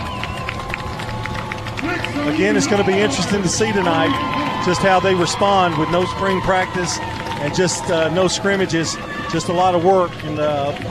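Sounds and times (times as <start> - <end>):
stadium crowd cheering: 0.0 - 10.8
speech: 1.8 - 10.8.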